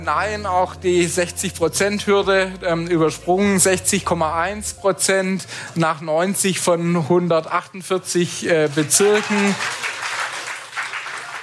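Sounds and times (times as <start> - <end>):
speech: 0.0 - 9.9
cheering and applause in town hall: 8.6 - 11.4.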